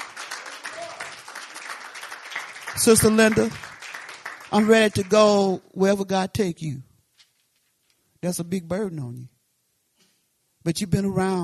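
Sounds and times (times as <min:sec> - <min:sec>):
church congregation clapping: 0:00.0 - 0:05.5
speech: 0:02.8 - 0:03.7, 0:04.5 - 0:06.9, 0:08.2 - 0:09.3, 0:10.6 - 0:11.4.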